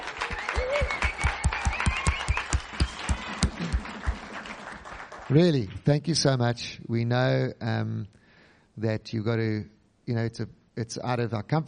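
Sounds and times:
group of people clapping: 0.0 - 5.9
speech: 5.3 - 8.2, 8.8 - 11.6.

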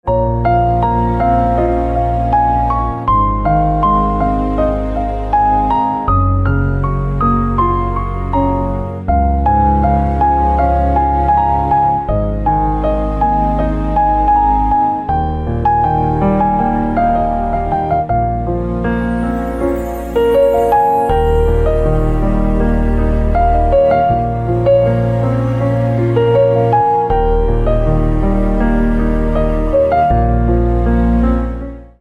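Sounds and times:
piano ringtone: 0.1 - 31.4.

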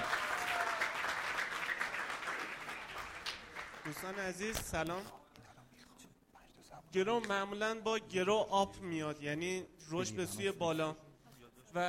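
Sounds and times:
audience applause: 0.0 - 4.2
speech: 3.9 - 5.2, 6.9 - 11.0.

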